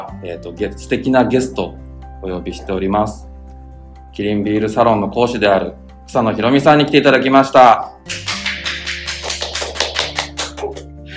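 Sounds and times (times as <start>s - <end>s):
speech: 0.0s - 3.3s, 4.1s - 8.3s
two people clapping: 8.1s - 11.0s.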